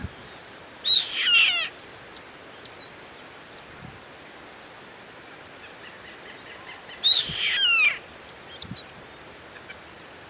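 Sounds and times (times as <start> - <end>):
harsh scratchy bird calls: 0.9 - 1.8, 6.9 - 8.8.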